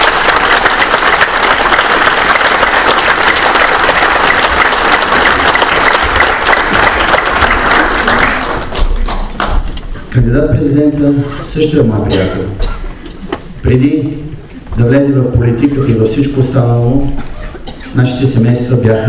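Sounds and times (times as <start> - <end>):
audience applause: 0.0 - 9.7
speech: 10.2 - 12.7, 13.6 - 17.3, 18.0 - 19.0.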